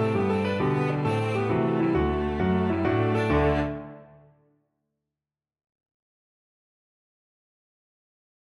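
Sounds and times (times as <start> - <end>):
cello: 0.0 - 4.3.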